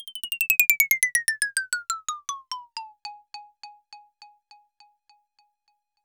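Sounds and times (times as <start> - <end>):
xylophone sequence: 0.0 - 3.8.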